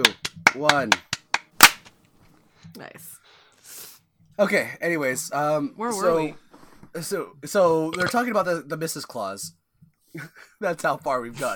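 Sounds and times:
speech: 0.0 - 1.1, 2.8 - 3.8, 4.4 - 11.5
group hand clap on countdown: 0.0 - 1.9.

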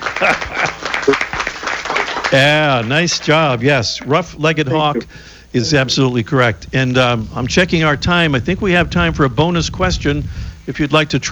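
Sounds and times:
studio audience applause: 0.0 - 5.0
laughter: 0.0 - 6.3
speech: 0.2 - 1.4, 2.3 - 11.3.

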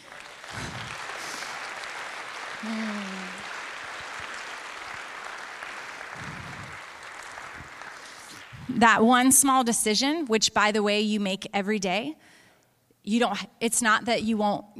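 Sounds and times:
church audience clapping: 0.0 - 8.8
speech: 2.6 - 3.0, 8.7 - 12.4, 13.0 - 14.7.

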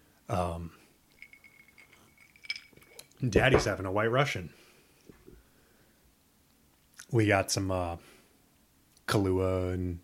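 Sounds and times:
speech: 0.3 - 0.8, 3.2 - 4.6, 7.1 - 8.1, 9.1 - 10.0
ice cubes in a lowball glass: 1.2 - 3.0.

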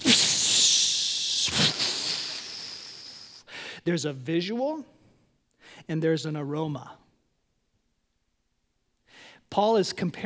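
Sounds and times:
person imitating the sizzle of a drink offering on a burning altar: 0.0 - 3.4
speech: 3.9 - 5.0, 5.9 - 7.0, 9.6 - 10.2.

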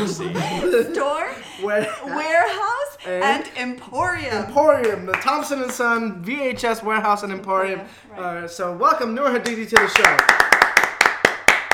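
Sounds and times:
speech: 0.0 - 10.6
two people clapping to welcome a guest: 9.4 - 11.7.

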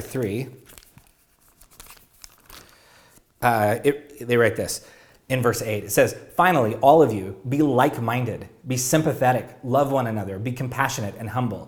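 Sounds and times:
speech: 0.0 - 0.7, 3.4 - 11.6
paper page turning: 0.0 - 3.3.

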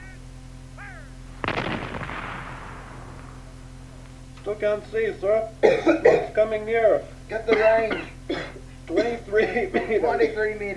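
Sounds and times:
steady low hum: 0.0 - 10.7
gunshot fired on a military command during a gas-mask drill: 1.4 - 4.6
laughter: 4.4 - 10.7
speech: 4.5 - 10.7.

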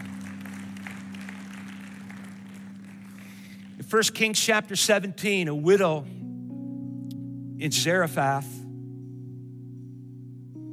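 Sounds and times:
audience clapping: 0.0 - 4.8
speech: 3.8 - 6.2, 7.6 - 8.6.

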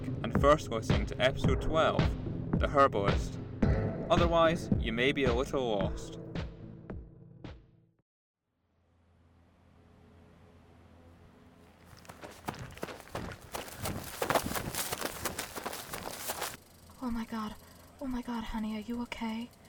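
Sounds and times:
speech: 0.4 - 3.4, 4.1 - 6.2, 17.1 - 19.6
running footsteps: 11.7 - 16.6.

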